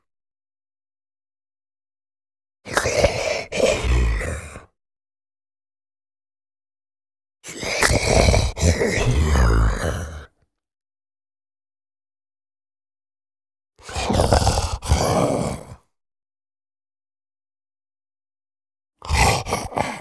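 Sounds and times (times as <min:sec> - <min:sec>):
huge calm wandering male zombie grunting growl: 0:03.4 - 0:04.7, 0:07.9 - 0:10.3, 0:13.9 - 0:15.8, 0:19.0 - 0:19.9.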